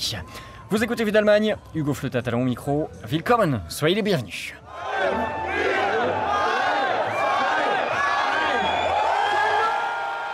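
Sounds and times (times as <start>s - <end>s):
speech: 0.0s - 5.7s
crowd counting down and cheering at midnight: 4.6s - 10.3s.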